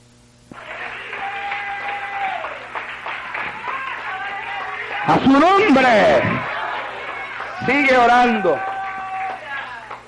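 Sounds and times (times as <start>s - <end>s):
audience applauding: 0.5s - 10.0s
speech: 5.1s - 6.6s, 7.6s - 8.7s.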